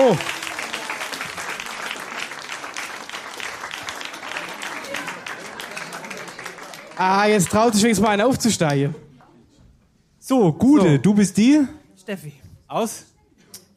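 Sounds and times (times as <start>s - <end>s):
audience applause at a stage show: 0.0s - 8.8s
speech: 0.1s - 0.4s, 7.0s - 9.0s, 10.3s - 13.1s.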